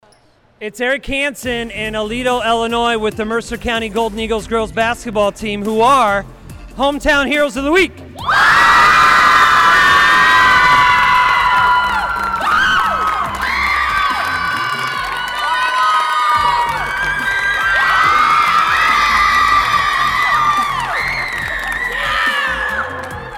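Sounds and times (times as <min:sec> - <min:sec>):
speech: 0:00.6 - 0:08.4
group of young girls cheering loudly: 0:08.2 - 0:23.3.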